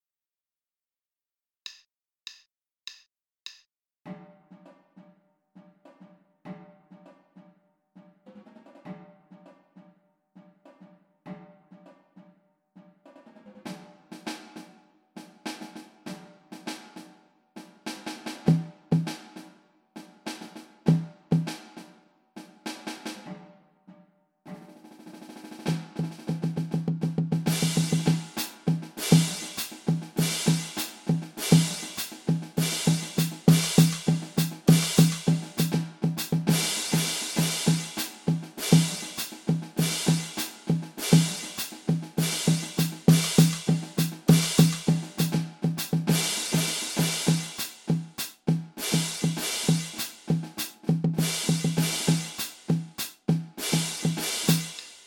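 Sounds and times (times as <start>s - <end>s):
drum kit: 13.7s - 23.3s, 24.7s - 55.0s.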